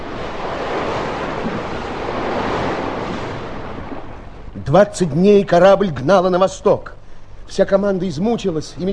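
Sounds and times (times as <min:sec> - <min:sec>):
gusting wind over a stormy sea: 0:00.0 - 0:04.6
stormy sea with churning, surging waves: 0:00.0 - 0:04.6
speech: 0:04.7 - 0:08.9.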